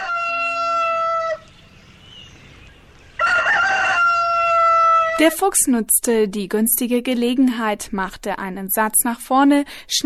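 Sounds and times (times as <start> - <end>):
rooster crowing cock-a-doodle-doo: 0.0 - 1.5, 3.2 - 5.2
speech: 5.2 - 10.0.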